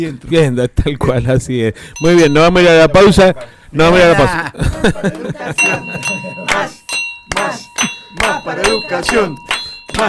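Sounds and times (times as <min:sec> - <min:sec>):
speech: 0:00.0 - 0:10.0
bell ringing with sustained high-pitched tones: 0:02.0 - 0:03.3, 0:05.6 - 0:10.0
laughter: 0:04.0 - 0:08.8.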